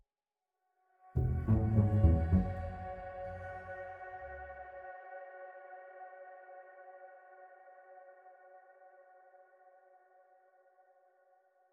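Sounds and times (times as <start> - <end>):
music intro at 103 bpm: 1.2 - 3.7.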